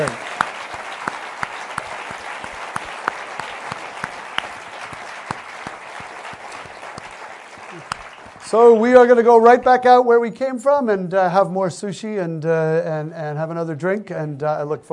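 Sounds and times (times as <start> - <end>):
speech: 0.0 - 0.2, 8.5 - 14.9
audience round of applause: 0.0 - 8.8.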